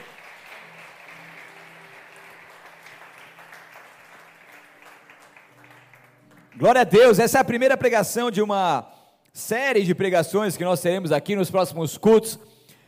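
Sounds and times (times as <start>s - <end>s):
audience applauding: 0.0s - 7.4s
speech: 6.6s - 12.6s.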